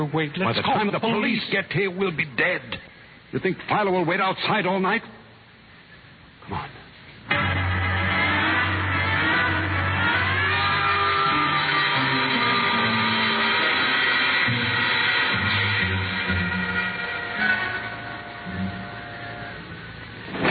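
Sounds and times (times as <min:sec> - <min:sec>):
speech: 0:00.0 - 0:05.2, 0:06.5 - 0:06.8
service elevator motor whining as it descends: 0:07.3 - 0:20.4.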